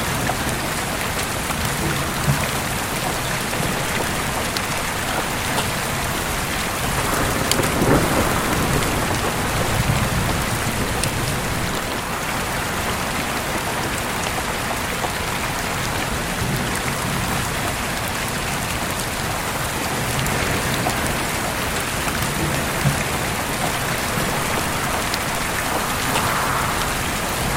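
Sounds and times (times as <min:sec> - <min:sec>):
rain: 0:00.0 - 0:27.5
thunder: 0:01.8 - 0:13.9, 0:19.9 - 0:27.5
howling wind: 0:02.0 - 0:16.4, 0:18.9 - 0:27.5.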